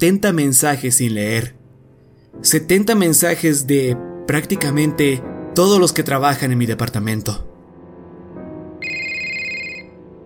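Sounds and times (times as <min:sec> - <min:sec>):
speech: 0:00.0 - 0:01.6, 0:02.3 - 0:07.5
phone ringing with an incoming call: 0:08.8 - 0:10.0.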